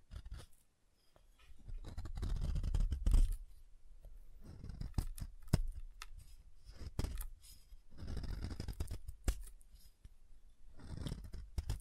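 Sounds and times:
soap being carved and tapped: 0:00.0 - 0:00.6, 0:01.6 - 0:03.4, 0:04.0 - 0:07.4, 0:08.0 - 0:10.2, 0:10.8 - 0:11.7.

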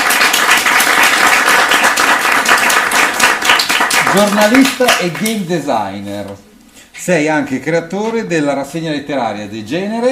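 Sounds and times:
audience applause: 0:00.0 - 0:05.4
speech: 0:04.1 - 0:10.1.

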